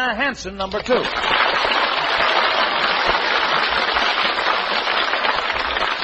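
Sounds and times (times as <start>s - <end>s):
speech: 0.0s - 1.9s
audience applause: 1.0s - 6.0s.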